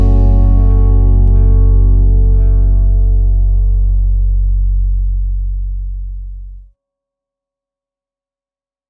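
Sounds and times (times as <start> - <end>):
triad chord vamps: 0.0 - 6.6.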